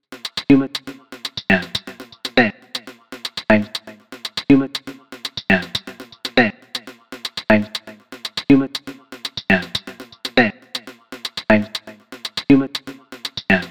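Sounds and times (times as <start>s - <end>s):
vocals: 0.0s - 13.7s.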